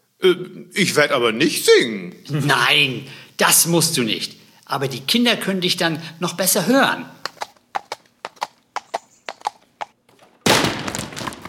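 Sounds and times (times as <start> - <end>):
speech: 0.2 - 7.2
person falling onto the floor from chair: 10.2 - 11.4.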